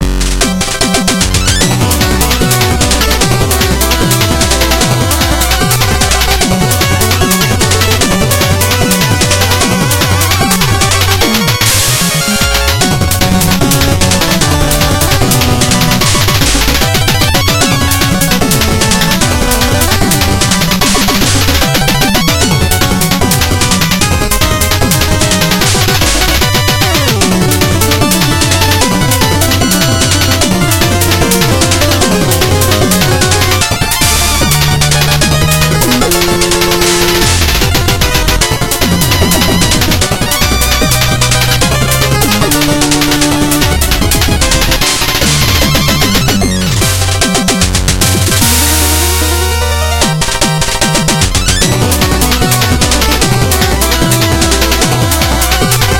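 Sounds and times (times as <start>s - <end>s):
boss music: 0.0s - 55.9s.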